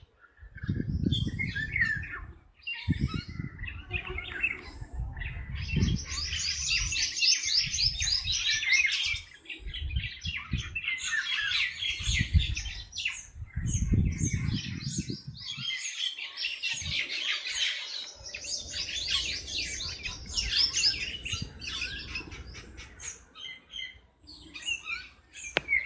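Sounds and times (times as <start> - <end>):
birds chirping chorus: 0.0 - 25.8.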